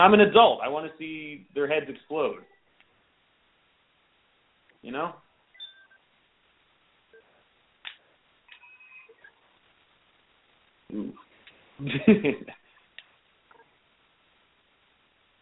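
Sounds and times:
speech: 0.0 - 2.5, 4.8 - 5.2, 10.9 - 11.2, 11.8 - 12.6
telephone switchboard electronic beeps and dial-tone chirps: 5.5 - 6.0, 8.5 - 9.4.

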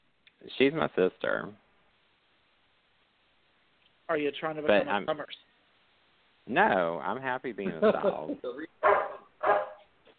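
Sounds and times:
speech: 0.4 - 1.6, 4.1 - 5.5, 6.5 - 9.0
laughter: 7.6 - 8.7
dog barking: 8.8 - 9.9.

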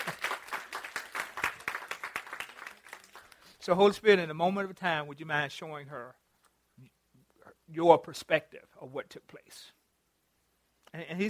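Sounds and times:
audience applause, hand clapping: 0.0 - 3.4
speech: 3.6 - 6.2, 7.7 - 9.8, 11.0 - 11.2.

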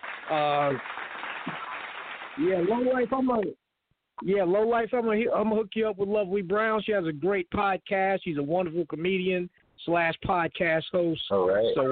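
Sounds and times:
people clapping: 0.0 - 3.5
speech: 0.3 - 1.0, 2.4 - 3.6, 4.2 - 11.9.

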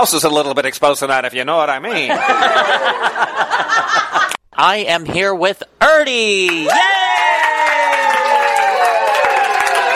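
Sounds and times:
speech: 0.0 - 7.4
laughter: 1.9 - 4.4
crowd cheering: 2.1 - 4.0, 6.5 - 9.9
crowd applauding: 6.5 - 9.9.

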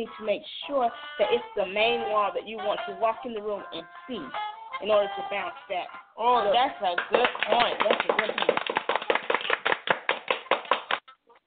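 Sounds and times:
speech: 0.0 - 8.8
hand claps: 6.8 - 11.0.

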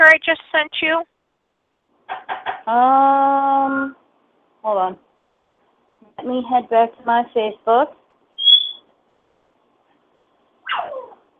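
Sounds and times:
speech: 0.1 - 1.1, 2.1 - 4.0, 4.6 - 5.0, 6.2 - 8.0
pet bird whistling: 8.4 - 8.9, 10.6 - 11.2.

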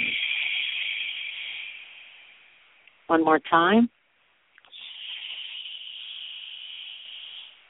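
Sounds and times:
deep exhale through the nose: 0.0 - 2.6, 4.7 - 7.6
speech: 3.1 - 4.0.

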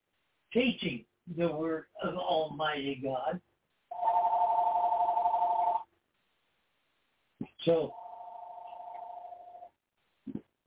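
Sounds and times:
speech: 0.5 - 3.5, 7.6 - 8.0
electronic phone ringing in a room: 3.9 - 5.9, 7.9 - 9.7.

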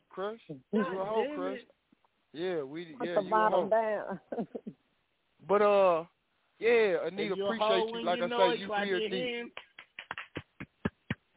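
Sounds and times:
speech: 0.2 - 4.7, 5.5 - 9.7
hand clapping: 9.5 - 11.3.

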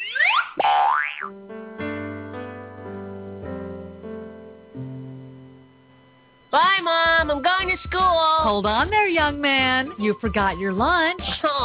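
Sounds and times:
cartoon bonus sound effect boing swoops: 0.0 - 1.4
speech: 6.5 - 11.6.

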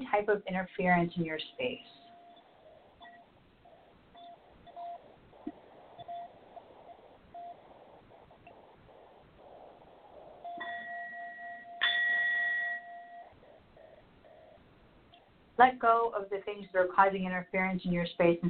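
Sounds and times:
speech: 0.1 - 2.0, 15.6 - 18.4
brass singing bowl ringing: 10.6 - 13.4.

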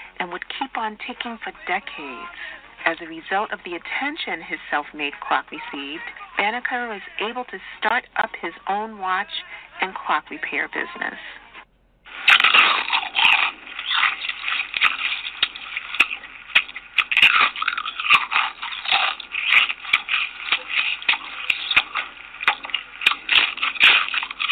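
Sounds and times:
speech: 0.2 - 11.4
person crunching into a potato chip: 12.1 - 24.5.

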